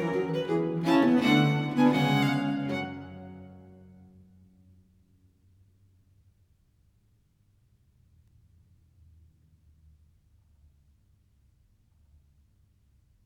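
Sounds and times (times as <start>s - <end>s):
viols playing a suite in G minor: 0.0s - 3.9s.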